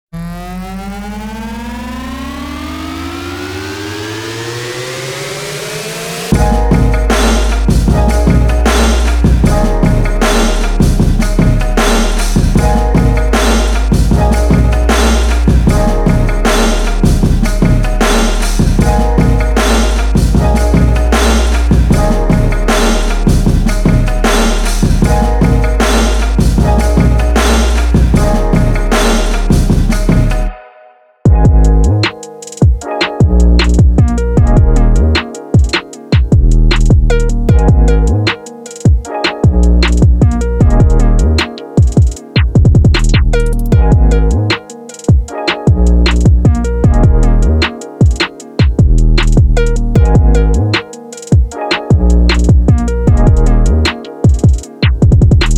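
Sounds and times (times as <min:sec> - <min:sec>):
lofi music: 0:00.2 - 0:55.5.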